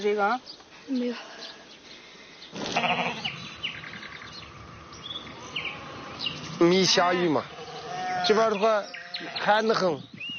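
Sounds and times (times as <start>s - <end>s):
speech: 0.0s - 1.6s, 2.5s - 3.3s, 6.6s - 7.6s, 8.2s - 10.1s
sheep bleating: 2.7s - 3.4s, 6.9s - 9.8s.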